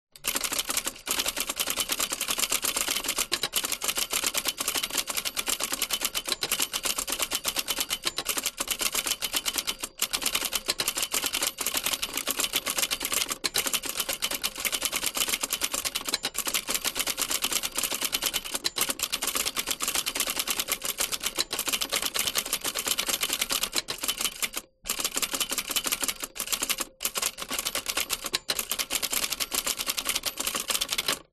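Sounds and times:
vintage 1960 office typewriter typing fast: 0:00.2 - 0:31.3.

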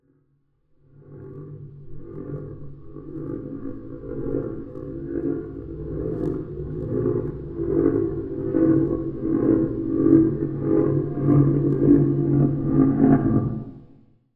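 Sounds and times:
dark pulsating resonating drone tone: 0:00.8 - 0:14.1.

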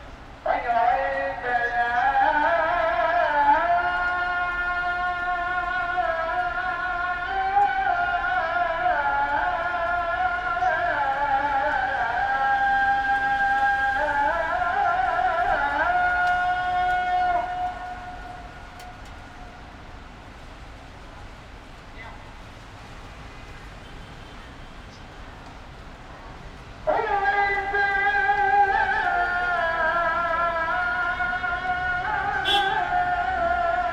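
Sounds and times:
morning call to prayer in Taksim Square Istanbul: 0:00.0 - 0:22.8, 0:26.4 - 0:33.9
city traffic in Taksim Square Istanbul: 0:00.0 - 0:33.9
car horns in Istanbul: 0:31.1 - 0:33.0.

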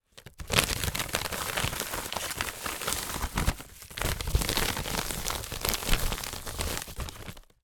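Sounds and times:
office padded envelope moved by hand: 0:00.1 - 0:07.6.

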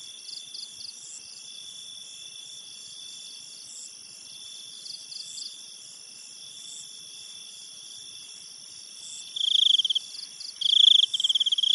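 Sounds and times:
insects calling at night: 0:00.0 - 0:11.7
pulsed insect chirps: 0:10.6 - 0:11.7.

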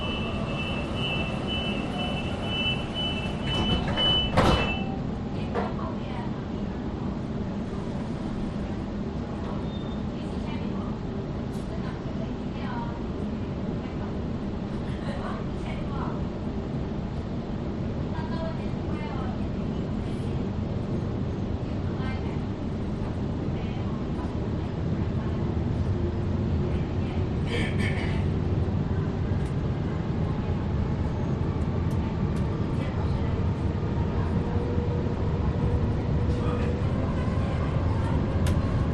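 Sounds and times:
metro train doors: 0:00.0 - 0:05.8, 0:36.2 - 0:38.9
metro train interior between stations: 0:00.0 - 0:38.9.

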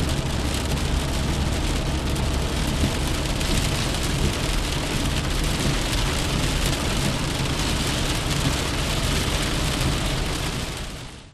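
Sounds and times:
rain on a car: 0:00.0 - 0:11.3.

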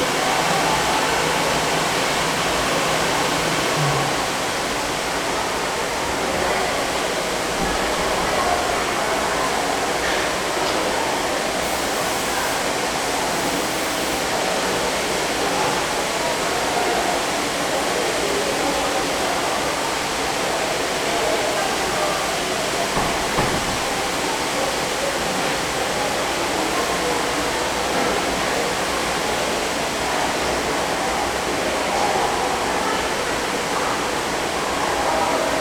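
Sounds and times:
people in a swimming pool changing area: 0:00.0 - 0:35.5
dryers in a swimming pool changing area: 0:11.6 - 0:14.4.

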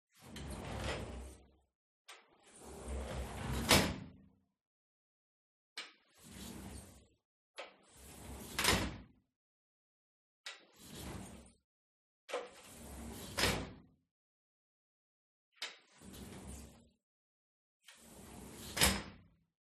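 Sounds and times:
soft distant metal sliding door opening and closing in a living room: 0:00.2 - 0:01.5, 0:02.1 - 0:04.2, 0:06.0 - 0:07.0, 0:07.6 - 0:09.0, 0:10.5 - 0:11.6, 0:12.3 - 0:13.8, 0:15.6 - 0:16.8, 0:17.9 - 0:19.2.

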